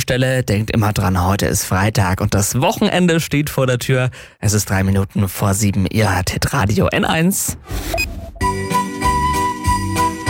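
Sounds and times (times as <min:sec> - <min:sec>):
speech: 0:00.1 - 0:08.6
Christmas tune: 0:08.4 - 0:10.2.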